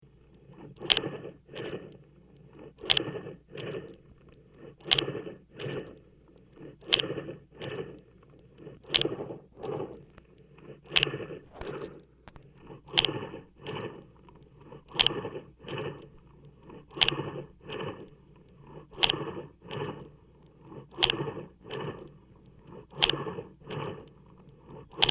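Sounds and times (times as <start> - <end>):
heart simulator running steady: 0.0 - 25.0
light bellows inflating and deflating for breathing: 0.6 - 25.0.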